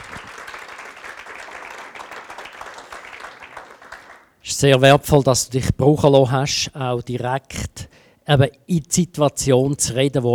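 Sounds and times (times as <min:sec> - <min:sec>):
audience applause: 0:00.0 - 0:04.3
speech: 0:04.5 - 0:10.3.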